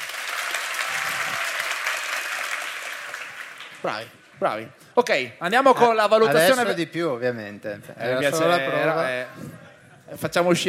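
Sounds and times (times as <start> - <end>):
test round of audience applause: 0.0 - 4.1
speech: 3.8 - 10.6.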